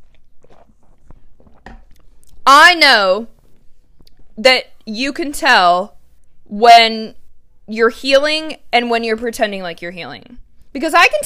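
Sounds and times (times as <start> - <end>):
person drinking water: 0.0 - 2.4
speech: 2.5 - 3.3, 4.4 - 11.2.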